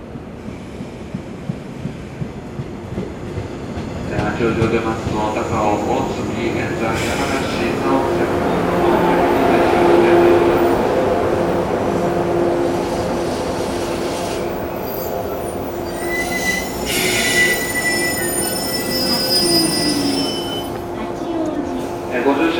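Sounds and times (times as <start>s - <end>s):
train rumbling arriving at station: 0.0s - 22.5s
speech: 4.4s - 8.5s
train wheels squealing: 14.8s - 20.8s.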